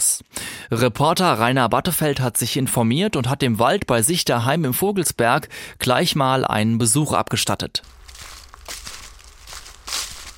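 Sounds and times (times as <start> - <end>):
speech: 0.7 - 8.3
footsteps walking through a forest: 7.8 - 10.3
faint rustle: 7.9 - 10.3.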